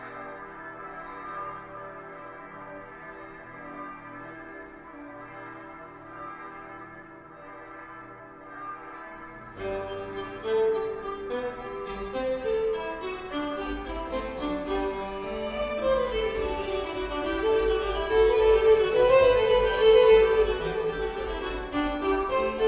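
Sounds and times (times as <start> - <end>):
bells improvisation: 9.6 - 22.6.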